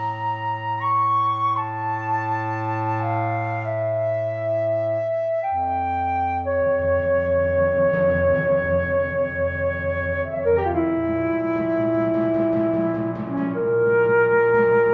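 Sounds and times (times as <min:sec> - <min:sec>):
medium tempo orchestral mystery music: 0:00.0 - 0:14.9.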